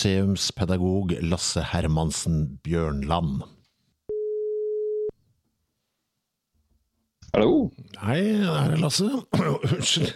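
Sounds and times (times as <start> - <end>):
speech: 0.0 - 3.6, 7.3 - 10.1
telephone ringback tone: 4.1 - 5.1
laughter: 9.4 - 10.1.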